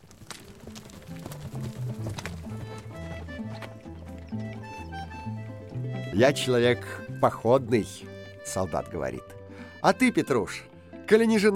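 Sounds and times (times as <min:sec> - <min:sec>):
hooves of four saddled horses clattering as riders set off: 0:00.0 - 0:09.3
melodic backing music: 0:01.6 - 0:11.5
speech: 0:06.2 - 0:11.5.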